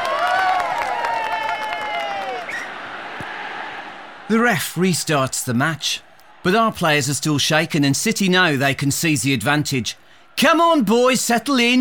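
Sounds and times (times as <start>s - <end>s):
large football crowd clapping in relief: 0.0s - 4.0s
speech: 4.3s - 11.7s.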